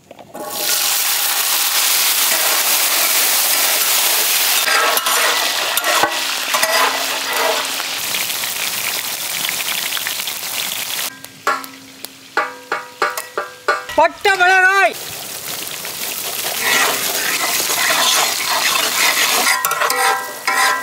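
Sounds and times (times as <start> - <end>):
lamb ribs frying with sizzle and crackle: 0.0 - 20.8
clinks and scrapes of stirring: 4.1 - 7.8, 16.5 - 20.8.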